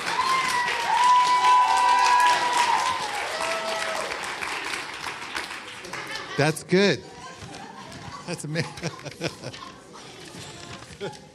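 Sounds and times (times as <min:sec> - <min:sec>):
audience applause: 0:00.0 - 0:06.5
speech: 0:06.4 - 0:07.1, 0:08.3 - 0:09.8, 0:11.0 - 0:11.3
laughter: 0:07.3 - 0:11.3.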